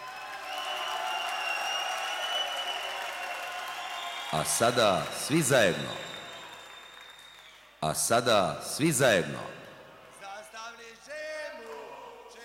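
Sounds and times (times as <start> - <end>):
audience applause at a show in Skopje: 0.0 - 7.6
speech: 4.3 - 6.1, 7.8 - 9.6.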